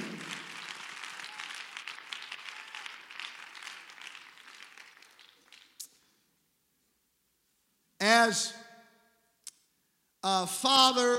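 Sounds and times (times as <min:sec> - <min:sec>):
audience clapping hands: 0:00.0 - 0:06.1
speech: 0:08.2 - 0:08.6, 0:10.2 - 0:11.1.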